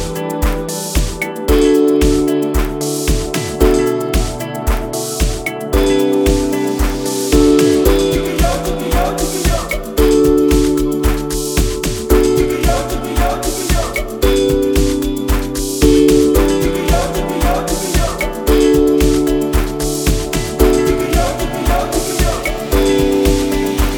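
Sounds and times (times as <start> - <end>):
amapiano music jams: 0.0 - 23.9.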